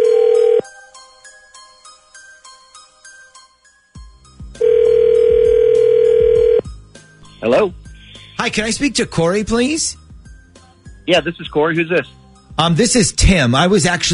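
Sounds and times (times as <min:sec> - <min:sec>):
telephone tone on an outgoing call: 0:00.0 - 0:00.7, 0:04.6 - 0:06.6
tinkling chime-like jingle: 0:00.3 - 0:04.4
speech: 0:07.4 - 0:07.8, 0:08.4 - 0:10.0, 0:11.1 - 0:14.1.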